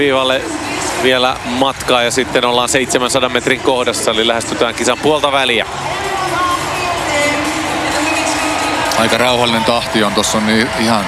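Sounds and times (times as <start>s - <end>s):
speech: 0.0s - 6.1s, 9.0s - 11.0s
stadium crowd cheering: 5.0s - 11.0s.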